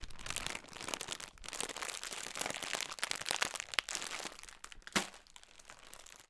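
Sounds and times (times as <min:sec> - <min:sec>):
packet being opened: 0:00.0 - 0:06.2.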